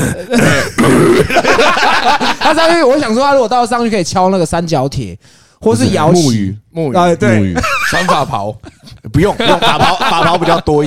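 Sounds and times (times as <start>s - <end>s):
person coughing: 0.0s - 1.4s
speech: 0.0s - 10.8s
laughter: 1.1s - 3.0s, 7.6s - 10.8s.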